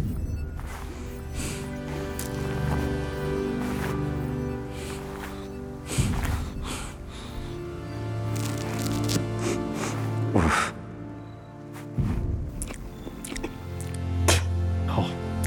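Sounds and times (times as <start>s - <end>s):
steady music in a video game: 0.0s - 15.4s
squishy wet chewing and biting of mushrooms in the video game The Forest: 12.6s - 14.0s.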